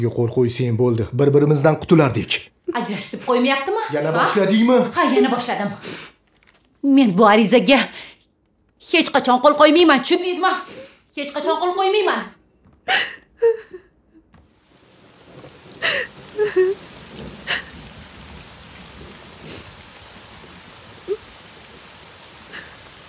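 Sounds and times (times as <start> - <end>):
speech: 0.0 - 6.1, 6.8 - 8.1, 8.8 - 13.8, 15.8 - 16.9
steady rain: 2.8 - 6.7, 12.9 - 23.0.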